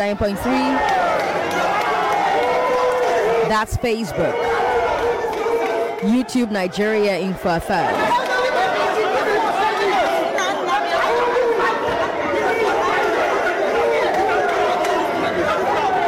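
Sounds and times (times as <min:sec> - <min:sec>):
speech: 0:00.0 - 0:01.7, 0:03.5 - 0:04.6, 0:06.0 - 0:08.3
rowdy crowd yelling and chanting: 0:00.0 - 0:16.0.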